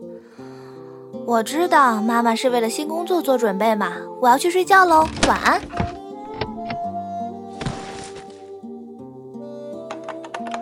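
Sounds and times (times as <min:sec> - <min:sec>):
speech: 0:01.3 - 0:06.0
typing on an old typewriter: 0:04.9 - 0:06.8.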